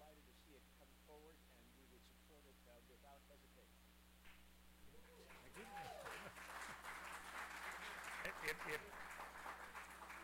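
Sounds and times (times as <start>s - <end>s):
audience applause: 5.2s - 10.2s
speech: 8.4s - 9.0s.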